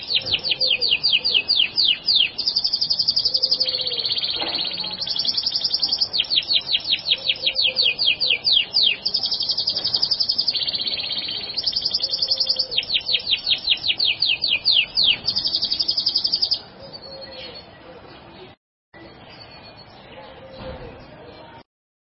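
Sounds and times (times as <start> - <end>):
bird song with clear high whistled notes that rise and drop: 0.0 - 17.6.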